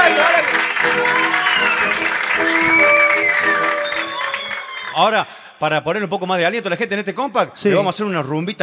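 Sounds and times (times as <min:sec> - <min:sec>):
crowd applauding: 0:00.0 - 0:05.2
whistles and shouted voices: 0:02.5 - 0:05.1
speech: 0:05.0 - 0:08.6.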